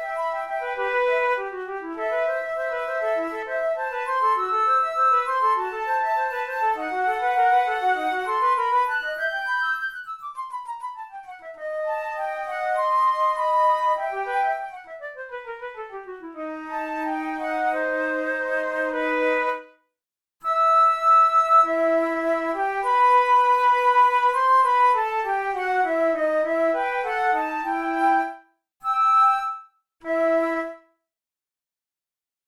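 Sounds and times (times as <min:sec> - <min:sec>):
flute duet: 0:00.0 - 0:19.8, 0:20.4 - 0:31.0.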